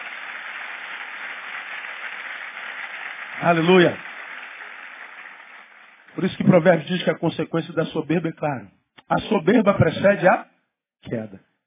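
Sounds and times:
audience applauding: 0.0s - 7.0s
speech: 3.4s - 4.1s, 6.2s - 11.5s.

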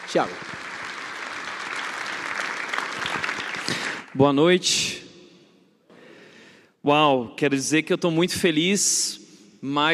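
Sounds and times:
audience applause: 0.0s - 4.2s
speech: 0.1s - 0.6s, 3.7s - 5.0s, 6.8s - 9.9s.

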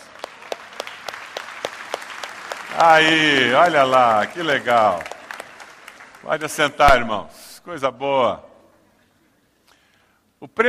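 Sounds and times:
audience applause: 0.0s - 6.7s
speech: 2.8s - 5.1s, 6.2s - 8.5s, 10.4s - 10.6s.

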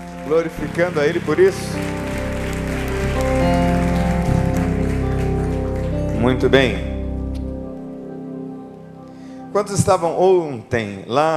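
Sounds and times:
audience applause: 0.0s - 7.1s
speech: 0.3s - 2.1s, 2.7s - 3.6s, 6.2s - 6.9s, 9.5s - 11.3s.

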